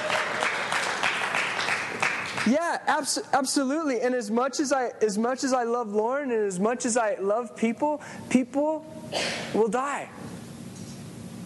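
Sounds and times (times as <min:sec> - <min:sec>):
audience applause: 0:00.0 - 0:02.5
speech: 0:02.4 - 0:10.3.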